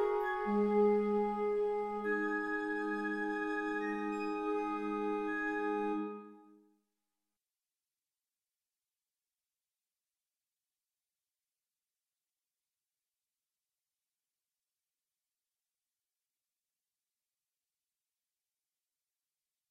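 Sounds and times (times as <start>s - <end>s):
flute choir playing: 0.0s - 6.5s.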